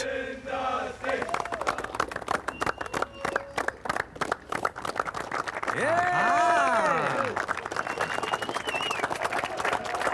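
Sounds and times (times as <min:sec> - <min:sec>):
carnival crowd cheering and clapping: 0:01.0 - 0:10.1
thin whistle-like tone: 0:02.5 - 0:03.7, 0:07.8 - 0:09.1
speech: 0:05.8 - 0:06.3.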